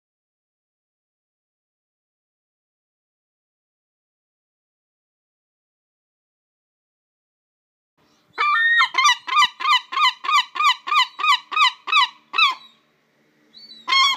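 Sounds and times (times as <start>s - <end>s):
Herring gull yelping calls: 8.4s - 12.8s, 13.6s - 14.1s.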